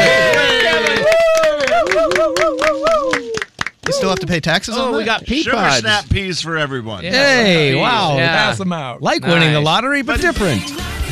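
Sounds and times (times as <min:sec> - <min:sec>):
sharp hand claps: 0:00.0 - 0:04.5
group of people cheering: 0:00.0 - 0:05.9
speech: 0:04.1 - 0:11.1.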